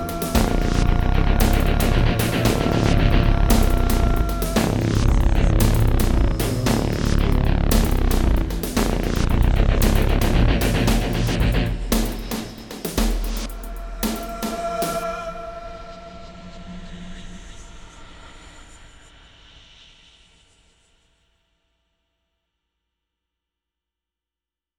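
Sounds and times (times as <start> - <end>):
goth rock music: 0.0 - 15.1.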